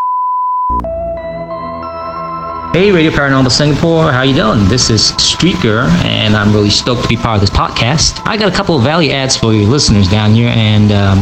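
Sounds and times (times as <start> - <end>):
voicemail beep: 0.0 - 2.7
speech: 2.8 - 11.1.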